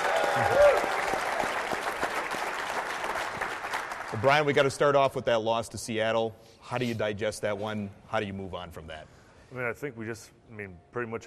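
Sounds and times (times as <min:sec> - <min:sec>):
audience applause: 0:00.0 - 0:04.6
speech: 0:00.4 - 0:00.6, 0:04.2 - 0:11.2.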